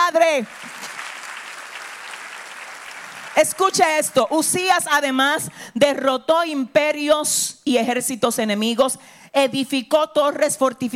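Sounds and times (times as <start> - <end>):
applause: 0.0 - 4.2
speech: 0.1 - 0.7, 3.4 - 10.9.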